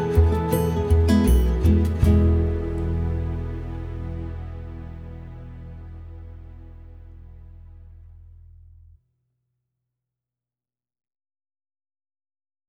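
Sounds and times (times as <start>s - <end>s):
South American music: 0.0s - 8.0s.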